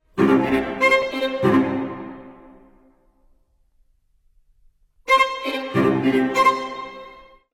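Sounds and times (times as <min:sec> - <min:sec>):
string quartet: 0:00.0 - 0:02.5, 0:05.1 - 0:07.4.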